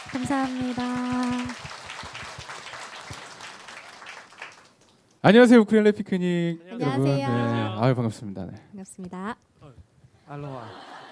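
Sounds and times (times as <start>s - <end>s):
audience applause: 0.0s - 5.2s
speech: 0.1s - 1.6s, 5.2s - 11.0s
laughter: 10.4s - 11.1s.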